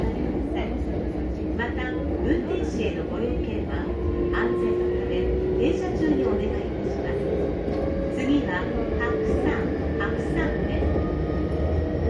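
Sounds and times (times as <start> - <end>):
JR Echigo Line train running: 0.0 - 12.0.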